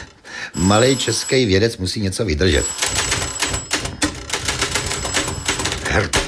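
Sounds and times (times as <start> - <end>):
doorbell being rung insistently: 0.6 - 1.8, 2.4 - 5.9
speech: 0.6 - 3.1, 6.0 - 6.2.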